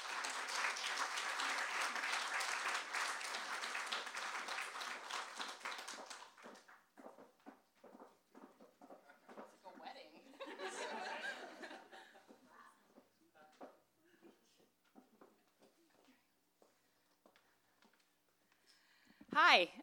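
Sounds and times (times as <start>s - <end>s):
audience applause at a bookstore reading event: 0.0s - 6.8s
laughter: 10.2s - 12.5s.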